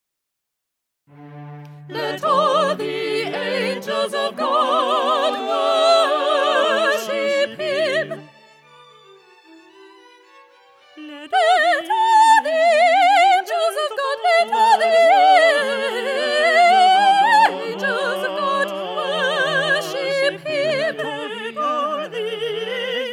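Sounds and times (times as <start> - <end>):
soprano singing: 1.8 - 8.3, 11.0 - 23.1.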